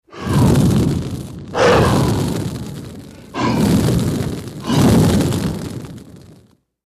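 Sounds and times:
fire-breathing dragon puffing fire: 0.0 - 6.4.

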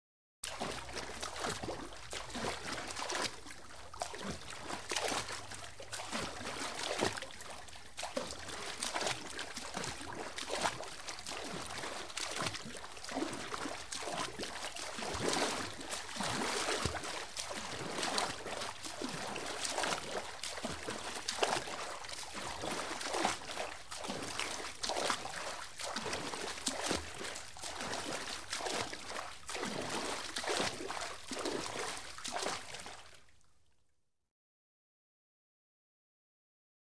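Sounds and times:
swimming arm movement in water: 0.4 - 32.8.

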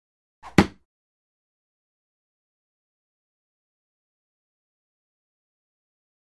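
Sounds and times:
feathered dart throw whoosh: 0.4 - 0.8.

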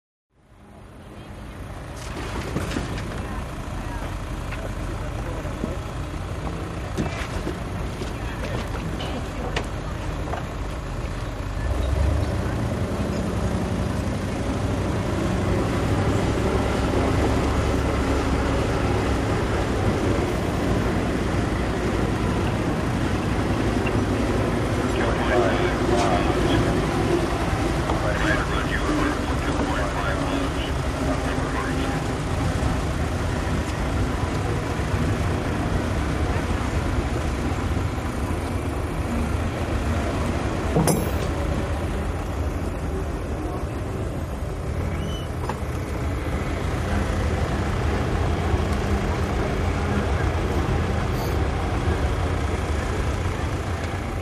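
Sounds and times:
motorboats at a boat race pit: 0.3 - 54.2.

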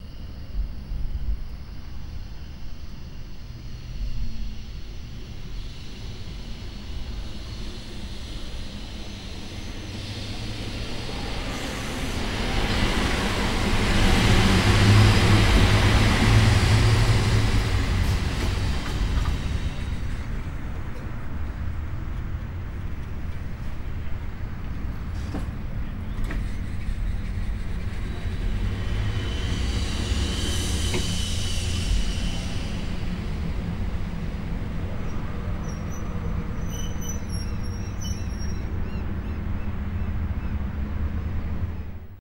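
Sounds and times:
electric bus arriving: 0.0 - 42.1.

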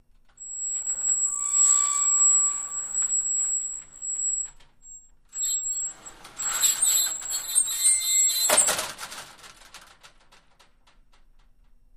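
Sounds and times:
very squeaky double accordion sliding metal door opening and closing: 0.4 - 4.5, 5.4 - 9.0.

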